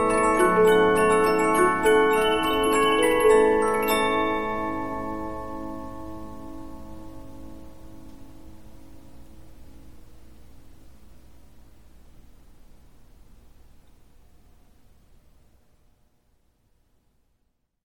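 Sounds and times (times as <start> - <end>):
Polyphon 15-inch disc music box playing: 0.0 - 7.0.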